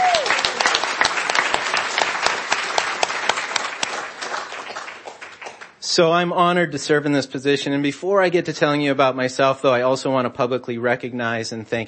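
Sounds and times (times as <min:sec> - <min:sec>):
audience applause at a school association gathering: 0:00.0 - 0:05.8
speech: 0:06.0 - 0:11.8.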